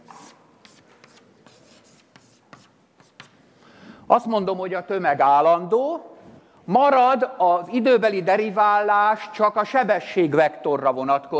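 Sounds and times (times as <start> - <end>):
scratchy writing on a surface: 0.0 - 3.4
speech: 4.1 - 6.1, 6.7 - 11.3.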